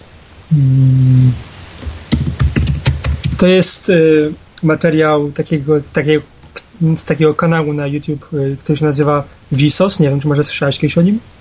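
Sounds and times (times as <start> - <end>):
steady low tone: 0.0 - 1.6
speech: 0.5 - 0.9, 3.4 - 11.4
typing on a computer keyboard in a Skype chat: 2.1 - 3.4.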